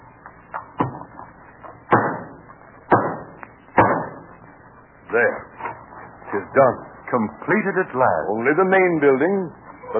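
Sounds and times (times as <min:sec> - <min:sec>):
hammer driving a nail: 0:01.9 - 0:04.2
speech: 0:05.1 - 0:05.7, 0:06.3 - 0:09.9.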